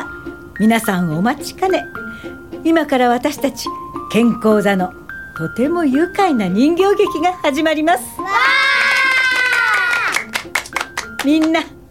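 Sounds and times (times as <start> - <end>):
speech: 0.6 - 8.5, 11.2 - 11.8
children cheering: 8.2 - 10.3
children's applause: 8.3 - 11.2.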